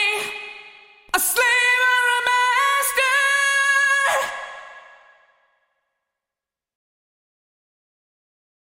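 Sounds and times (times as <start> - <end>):
vocal through Korg DRV 2000 large vocal reverb: 0.0 - 6.3.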